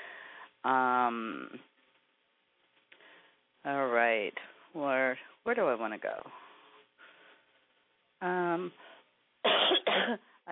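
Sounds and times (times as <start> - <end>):
speech: 0.6 - 1.7, 3.6 - 6.4, 8.2 - 10.5
person coughing: 9.5 - 10.2.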